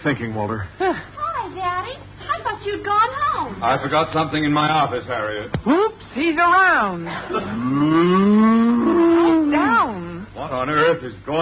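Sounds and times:
speech: 0.0s - 8.9s, 10.4s - 11.4s
cow mooing: 7.5s - 9.8s.

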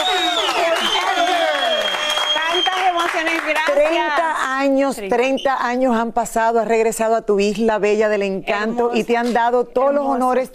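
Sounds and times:
audience applause: 0.0s - 4.2s
speech: 3.5s - 10.5s.

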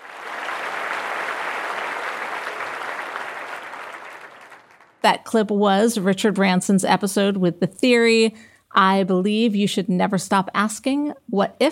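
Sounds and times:
audience applause: 0.0s - 5.0s
speech: 5.0s - 11.7s.

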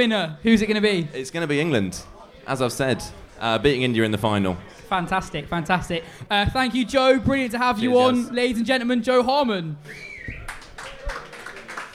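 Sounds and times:
speech: 0.0s - 10.1s
spirited audience applause: 10.1s - 11.9s.

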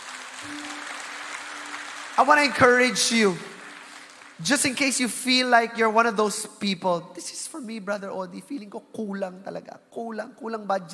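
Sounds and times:
crowd clapping: 0.0s - 5.7s
speech: 0.4s - 0.7s, 2.2s - 3.5s, 4.4s - 10.9s.

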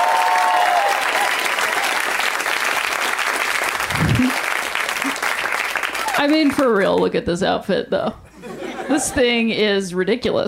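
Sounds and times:
crowd applauding comedians: 0.0s - 7.0s
speech: 6.2s - 8.2s, 8.9s - 10.4s
laughter: 8.3s - 9.4s.

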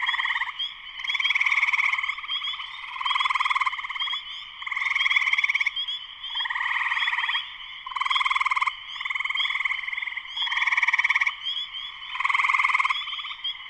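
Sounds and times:
spring peeper chorus: 0.0s - 13.6s.

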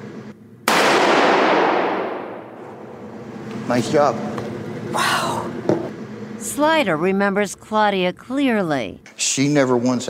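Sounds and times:
.357 revolver gunshot at a shooting range: 0.6s - 3.1s
speech: 3.7s - 5.2s, 6.6s - 10.0s.

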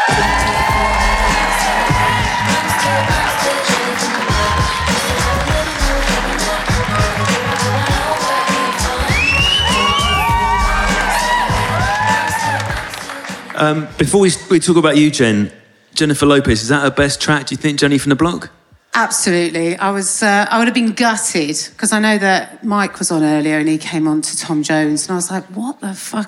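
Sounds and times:
studio audience applauding and cheering a comedian guest's entrance: 0.0s - 14.2s
speech: 13.6s - 26.2s.

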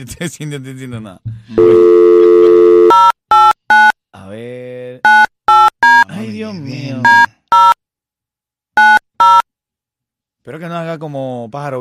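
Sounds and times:
speech: 0.0s - 1.9s, 10.5s - 11.8s
laughter: 1.4s - 2.6s
short bright electronic beeps of a ringing call: 1.6s - 4.0s, 7.0s - 7.8s, 8.8s - 9.5s
steady phone tone: 1.6s - 4.0s, 8.8s - 9.4s.

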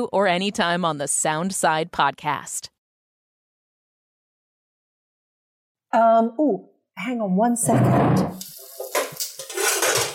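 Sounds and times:
speech: 0.0s - 2.7s, 5.9s - 8.5s
metal soup pot clattering and scraping against a stovetop: 8.4s - 10.1s.

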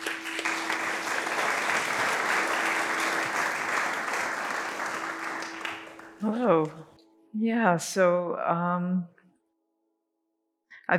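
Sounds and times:
audience at a mindfulness meditation event applauding: 0.0s - 6.9s
speech: 6.2s - 9.2s.

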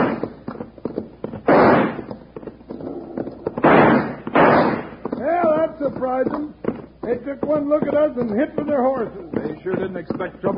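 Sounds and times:
six-gun revolver shots: 1.4s - 2.1s, 3.6s - 5.0s
sharp cracks and pops: 1.4s - 2.2s, 3.5s - 5.6s
speech: 7.3s - 10.5s.

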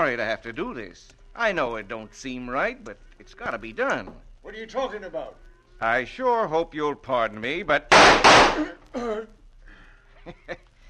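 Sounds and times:
speech: 0.0s - 9.4s, 10.3s - 10.7s
gunshot in a western radio drama: 7.9s - 8.7s.

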